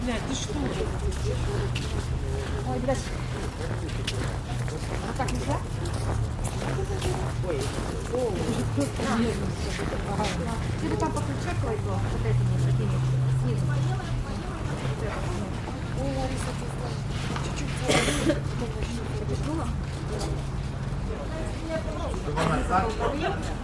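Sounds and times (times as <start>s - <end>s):
crispy footsteps on snow: 0.0s - 13.0s
heavy crowd walla at open air food market in Moscow Russia in winter: 0.0s - 23.6s
medium traffic in Moscow Russia in winter: 0.0s - 23.6s.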